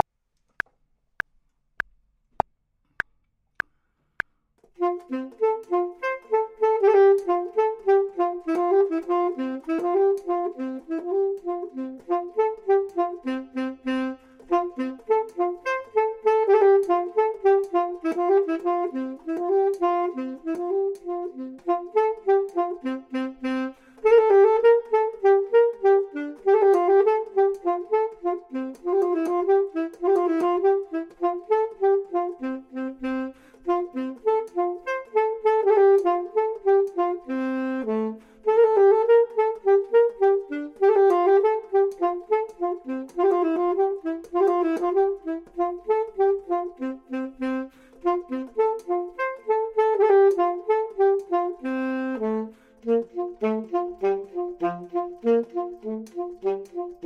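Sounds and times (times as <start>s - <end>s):
saxophone: 4.6s - 57.0s
clarinet: 4.8s - 57.0s.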